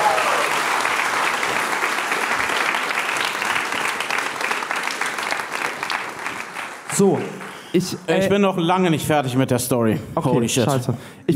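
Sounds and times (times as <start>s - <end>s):
audience applause: 0.0s - 8.2s
speech: 7.0s - 11.3s.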